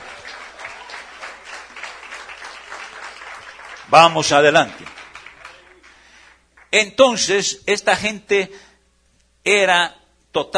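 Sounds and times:
audience applauding: 0:00.0 - 0:06.8
speech: 0:03.9 - 0:05.0, 0:06.8 - 0:08.7, 0:09.4 - 0:10.5.

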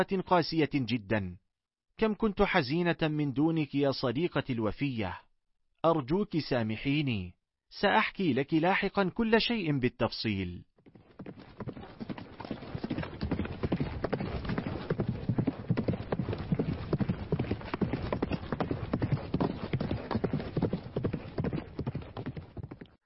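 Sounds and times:
speech: 0:00.0 - 0:01.4, 0:02.0 - 0:05.2, 0:05.8 - 0:11.6
mare's hooves clip-clopping as she prances and turns while ridden: 0:10.8 - 0:23.0.

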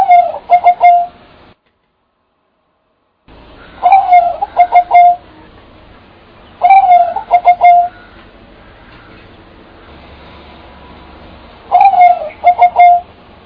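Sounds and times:
bird call: 0:00.0 - 0:01.2, 0:03.6 - 0:05.5, 0:06.5 - 0:09.3, 0:11.7 - 0:13.1.

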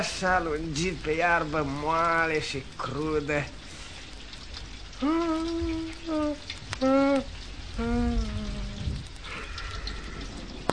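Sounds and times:
speech: 0:00.0 - 0:03.6, 0:05.0 - 0:08.4
rain falling: 0:00.0 - 0:10.7.

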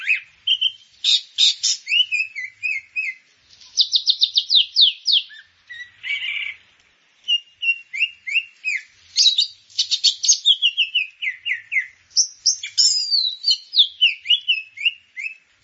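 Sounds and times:
grey-cheeked bulbul singing chattery whistles and high twitters: 0:00.0 - 0:06.6, 0:07.2 - 0:15.5.

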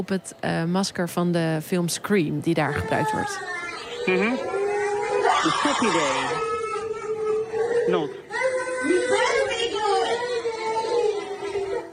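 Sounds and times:
speech: 0:00.0 - 0:04.6, 0:05.4 - 0:06.5, 0:07.9 - 0:09.4
toddlers at a daycare in Mississippi wailing and crying after a mask fright: 0:02.7 - 0:11.9.

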